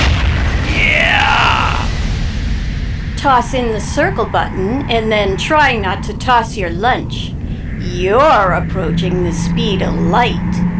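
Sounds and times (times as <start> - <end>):
sonic boom effect low rumble: 0.0 - 10.7
speech: 3.2 - 10.6.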